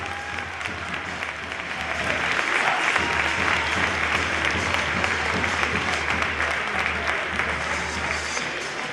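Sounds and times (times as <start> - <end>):
large stadium crowd standing and applauding: 0.0 - 8.9.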